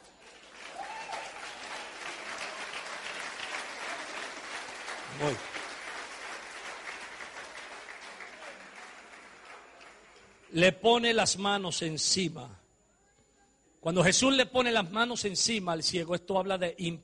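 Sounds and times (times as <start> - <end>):
audience clapping hands: 0.0 - 10.7
speech: 5.2 - 5.6, 10.5 - 12.6, 13.8 - 17.0.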